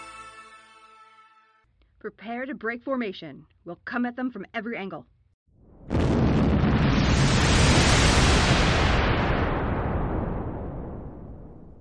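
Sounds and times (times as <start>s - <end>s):
speech: 2.0s - 5.1s
Singularity missile striking ships in a video game: 5.6s - 11.7s.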